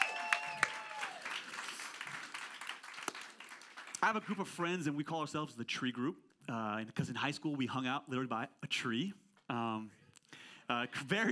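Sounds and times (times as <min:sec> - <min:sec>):
high whistle-like cheer: 0:00.0 - 0:01.4
audience applause: 0:00.0 - 0:04.4
speech: 0:04.0 - 0:10.0, 0:10.7 - 0:11.3.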